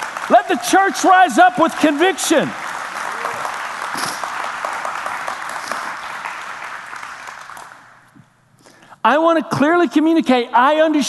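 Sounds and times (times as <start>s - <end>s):
church audience clapping hands: 0.0s - 8.2s
speech: 0.5s - 2.6s, 9.0s - 11.0s.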